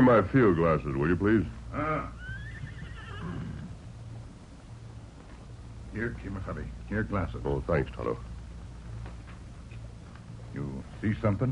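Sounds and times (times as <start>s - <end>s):
speech: 0.0s - 2.2s, 6.0s - 8.3s, 10.6s - 11.5s
low steady rumble of noise: 0.0s - 11.5s
horse whinnying: 1.8s - 3.8s.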